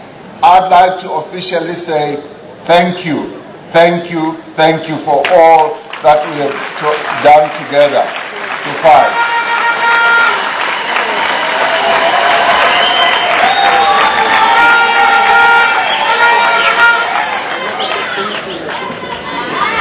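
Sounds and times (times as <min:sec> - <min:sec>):
speech: 0:00.4 - 0:09.3
people clapping: 0:05.1 - 0:19.7
cheering crowd at a South African gathering: 0:05.2 - 0:19.7
vuvuzela horns droning at a South African gathering: 0:08.8 - 0:12.0, 0:12.8 - 0:18.0.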